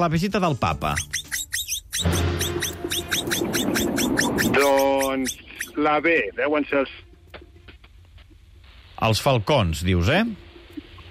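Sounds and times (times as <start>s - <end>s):
speech: 0.0s - 1.3s, 2.0s - 2.4s, 3.1s - 7.0s, 9.0s - 10.5s
capybara chirping squeaks: 0.8s - 5.9s.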